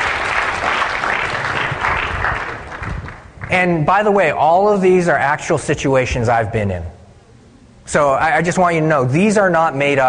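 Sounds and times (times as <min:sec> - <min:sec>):
round of applause: 0:00.0 - 0:03.6
speech: 0:03.5 - 0:07.0, 0:07.9 - 0:10.0.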